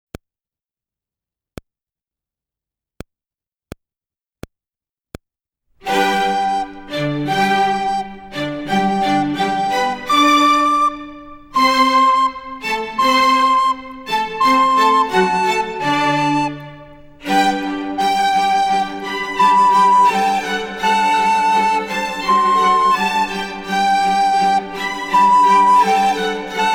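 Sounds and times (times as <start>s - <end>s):
slow recorder music: 5.8s - 26.7s.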